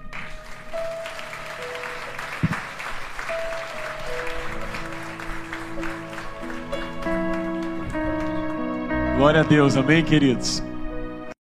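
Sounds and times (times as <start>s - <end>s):
audience clapping: 0.0s - 9.1s
sustained keyboard notes: 0.0s - 11.3s
speech: 9.2s - 10.7s.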